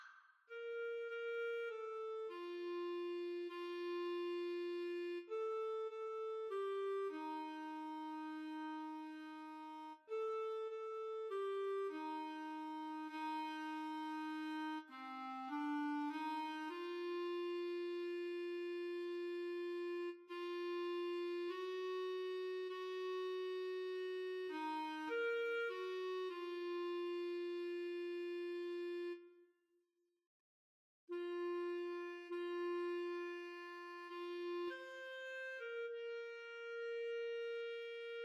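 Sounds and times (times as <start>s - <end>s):
clarinet duet: 0.5s - 29.4s, 31.1s - 38.2s.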